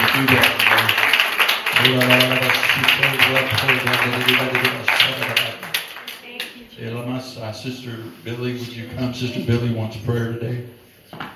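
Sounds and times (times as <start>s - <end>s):
church congregation clapping in steady rhythm: 0.0s - 6.6s
speech: 0.2s - 0.6s, 1.8s - 5.6s, 7.2s - 11.2s.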